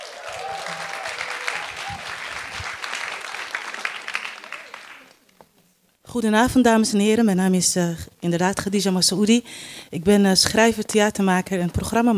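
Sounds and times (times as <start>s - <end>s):
audience applause: 0.0s - 5.3s
speech: 6.1s - 12.1s.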